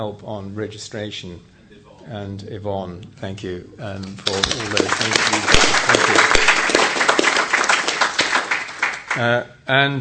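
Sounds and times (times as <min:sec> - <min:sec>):
speech: 0:00.0 - 0:06.6, 0:09.2 - 0:09.9
audience applause: 0:04.2 - 0:09.2.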